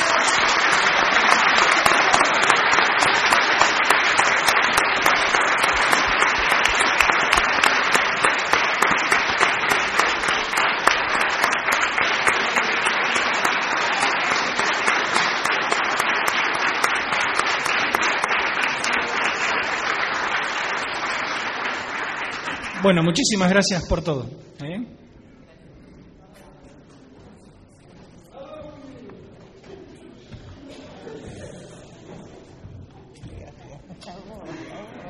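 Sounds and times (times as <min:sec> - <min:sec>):
audience applause: 0:00.0 - 0:23.4
speech: 0:22.9 - 0:24.7.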